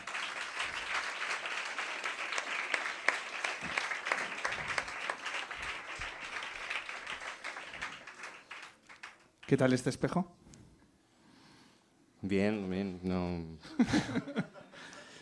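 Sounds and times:
audience applause: 0.0s - 9.8s
speech: 9.5s - 10.4s, 12.3s - 14.5s
laughter: 13.6s - 15.2s.

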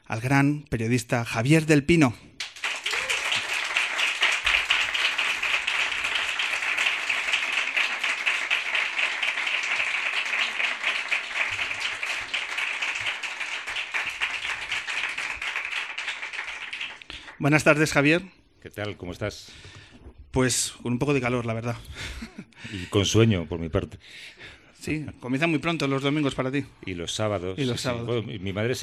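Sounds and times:
speech: 0.1s - 2.3s, 17.4s - 19.8s, 20.4s - 28.8s
applause to welcome a guest: 2.4s - 18.0s.

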